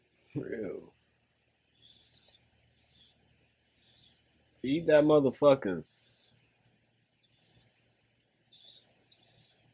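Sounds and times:
speech: 0:00.4 - 0:01.0, 0:04.6 - 0:06.0
baby bird chirping: 0:01.7 - 0:05.2, 0:05.8 - 0:06.5, 0:07.2 - 0:07.8, 0:08.5 - 0:09.7.

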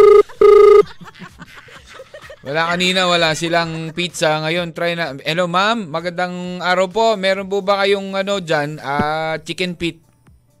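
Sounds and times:
telephone ringing with warbling ring bursts: 0:00.0 - 0:00.9
laughter: 0:00.2 - 0:04.4
speech: 0:02.5 - 0:10.0.

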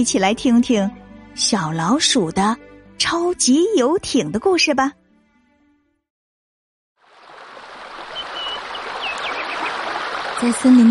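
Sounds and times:
speech: 0:00.0 - 0:05.0, 0:10.4 - 0:10.9
small river flowing: 0:07.0 - 0:10.9
faint bird chirps: 0:08.1 - 0:09.8.

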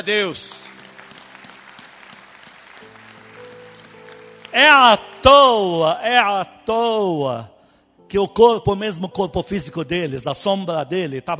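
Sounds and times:
speech: 0:00.0 - 0:00.7, 0:04.5 - 0:07.5, 0:08.1 - 0:11.3
crowd applauding: 0:00.2 - 0:06.0.

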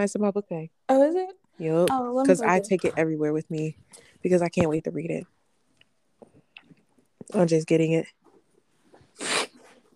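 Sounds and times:
speech: 0:00.0 - 0:05.4, 0:07.3 - 0:08.2
nose sniff: 0:09.0 - 0:09.8.

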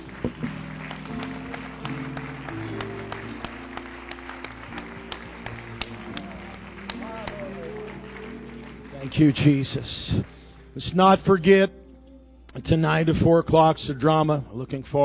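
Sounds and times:
audience clapping in praise: 0:00.0 - 0:11.5
murmuring voices: 0:06.1 - 0:09.1
speech: 0:09.1 - 0:11.8, 0:12.6 - 0:15.0.

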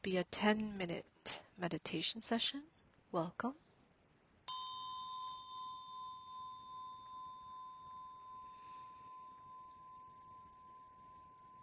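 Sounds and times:
speech: 0:00.0 - 0:03.6
soft hiss: 0:00.0 - 0:11.6
meditation bell ringing: 0:04.5 - 0:11.6.

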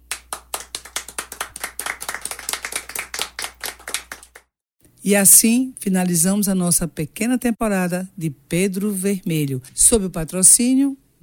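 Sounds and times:
hands clapping: 0:00.0 - 0:04.5
speech: 0:05.0 - 0:11.2.

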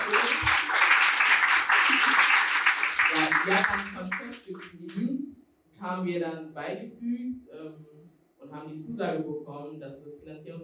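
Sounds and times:
applause: 0:00.0 - 0:04.9
speech: 0:03.4 - 0:05.0, 0:05.8 - 0:07.9, 0:08.5 - 0:10.6.

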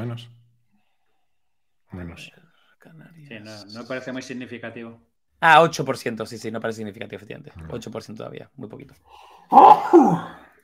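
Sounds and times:
speech: 0:00.0 - 0:00.4, 0:01.9 - 0:10.4
sneeze: 0:09.5 - 0:10.5.

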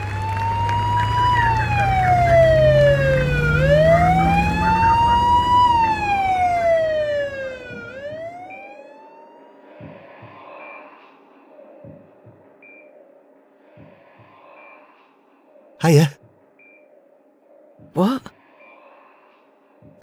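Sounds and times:
ambulance siren: 0:00.1 - 0:08.6
speech: 0:15.9 - 0:16.2, 0:18.0 - 0:18.3.

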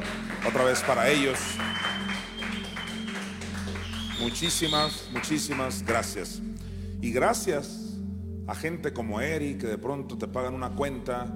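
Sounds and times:
audience applause: 0:00.0 - 0:05.5
speech: 0:00.4 - 0:01.9, 0:04.2 - 0:07.8, 0:08.5 - 0:11.3.

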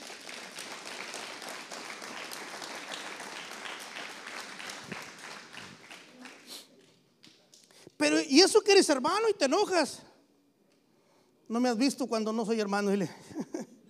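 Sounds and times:
audience applause: 0:00.0 - 0:06.6
speech: 0:08.0 - 0:10.1, 0:11.5 - 0:13.4.

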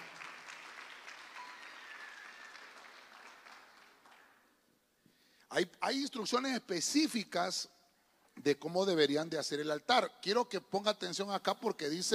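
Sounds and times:
church congregation clapping hands: 0:00.0 - 0:04.6
speech: 0:05.5 - 0:07.8, 0:08.4 - 0:12.1.

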